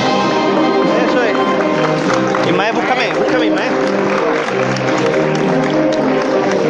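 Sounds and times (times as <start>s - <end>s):
audience applause after a band solo: 0.1s - 6.6s.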